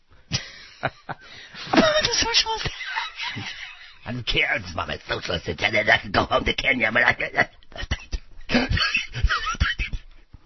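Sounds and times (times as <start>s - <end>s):
laughter: 0.3s - 4.1s, 7.8s - 10.0s
speech: 0.8s - 9.3s
voice imitating Muttley the cartoon dog's wheezing snicker: 7.8s - 10.1s.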